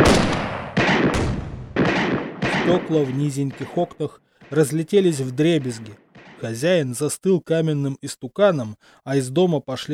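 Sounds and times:
gunshots: 0.0 - 6.8
speech: 2.7 - 9.9.

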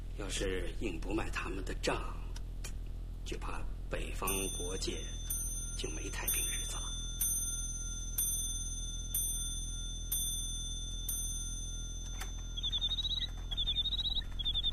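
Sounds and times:
speech: 0.2 - 2.3, 3.3 - 6.9
bird-song clock chiming and chirping: 4.3 - 14.7.

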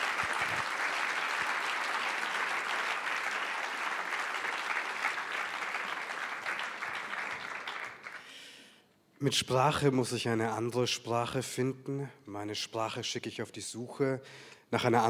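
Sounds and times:
audience applause at a literary event: 0.0 - 8.4
speech: 9.2 - 15.0.

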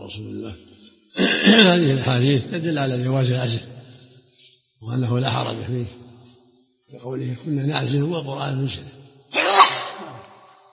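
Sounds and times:
speech: 0.1 - 3.7, 4.8 - 6.1, 6.9 - 9.4
person sneezing: 1.2 - 1.6.

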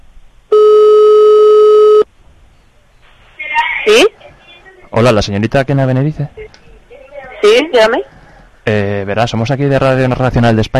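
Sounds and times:
telephone ringing tone, call not answered: 0.5 - 2.1
speech: 5.0 - 6.6, 7.4 - 10.7.

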